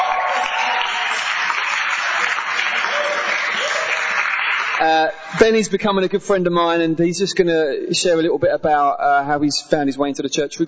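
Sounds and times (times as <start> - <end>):
audience applause for speaker: 0.0 - 5.0
speech: 4.8 - 10.6.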